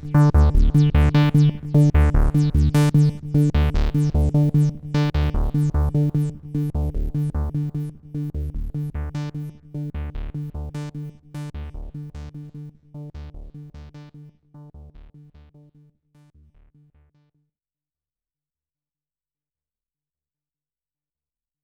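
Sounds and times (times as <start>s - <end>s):
Andromeda A6 multimode synthesizer: 0.0s - 17.1s.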